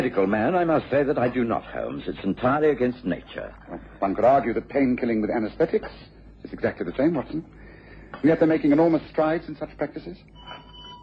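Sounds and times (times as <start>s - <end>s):
speech: 0.0s - 10.6s
doorbell ringing: 10.4s - 11.0s.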